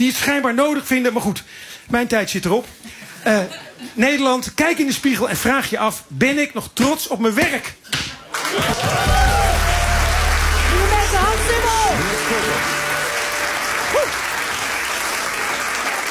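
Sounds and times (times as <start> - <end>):
speech: 0.0 - 9.3
audience applause: 8.3 - 16.1.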